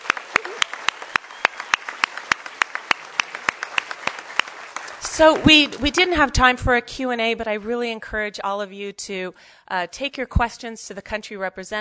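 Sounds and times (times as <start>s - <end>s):
audience applause: 0.0s - 6.2s
speech: 5.2s - 11.8s.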